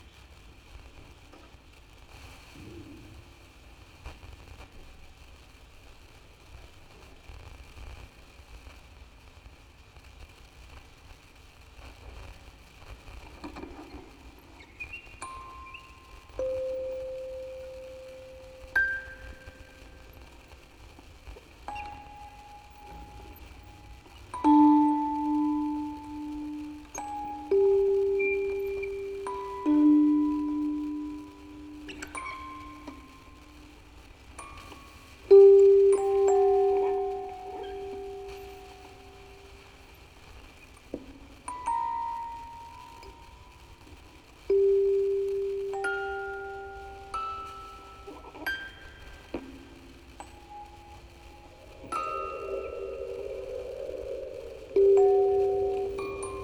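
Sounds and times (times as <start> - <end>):
quartet of music boxes playing: 13.5 - 56.4.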